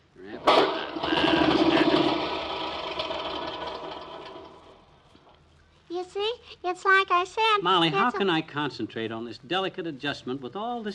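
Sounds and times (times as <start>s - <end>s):
lawnmower engine starting: 0.4s - 5.3s
speech: 6.8s - 10.9s.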